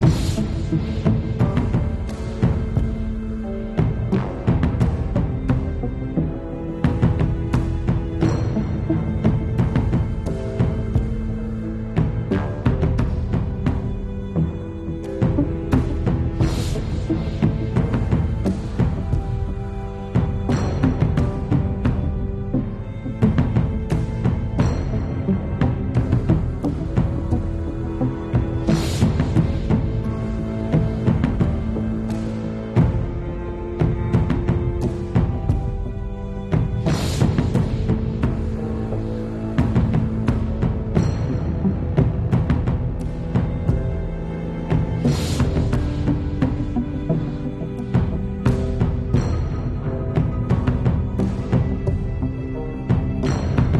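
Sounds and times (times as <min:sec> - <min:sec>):
tense emotional music loop: 0:00.0 - 0:53.7.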